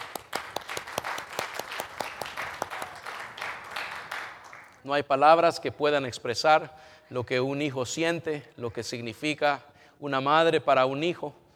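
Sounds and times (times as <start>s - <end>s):
audience applause: 0.0s - 4.8s
speech: 4.8s - 11.4s.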